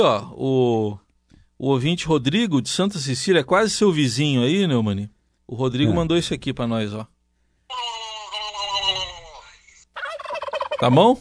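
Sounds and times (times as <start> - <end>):
speech: 0.0 - 1.0, 1.6 - 7.1, 10.8 - 11.2
poultry calls from a whole henhouse: 10.0 - 10.9.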